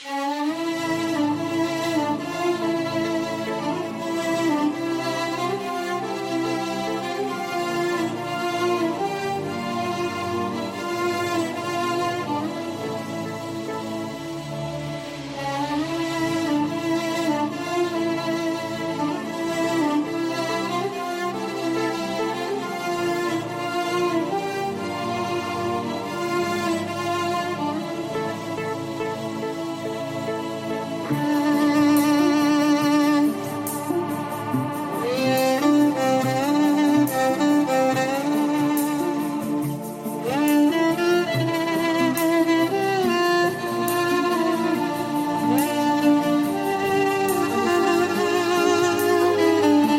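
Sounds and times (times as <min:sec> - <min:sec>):
violin: 0:00.0 - 0:49.9.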